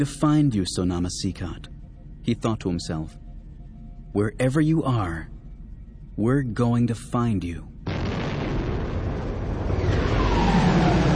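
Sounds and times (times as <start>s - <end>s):
speech: 0.0s - 1.7s, 2.3s - 3.2s, 4.1s - 5.4s, 6.2s - 8.1s
spaceship engines surging into hyperspace: 9.1s - 11.1s.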